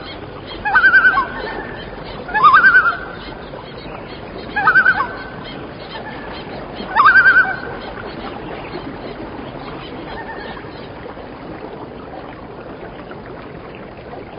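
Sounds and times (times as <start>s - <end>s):
birds: 0.0s - 11.4s.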